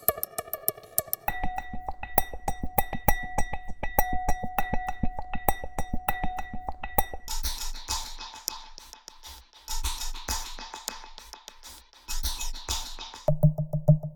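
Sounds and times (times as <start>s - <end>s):
tonal percussion: 0.0s - 9.0s, 12.1s - 14.1s.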